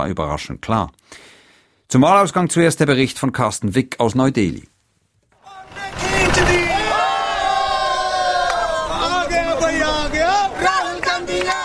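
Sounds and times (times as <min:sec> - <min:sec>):
speech: 0:00.0 - 0:01.3, 0:01.9 - 0:04.7
crowd cheering and chanting in the street: 0:05.4 - 0:11.6.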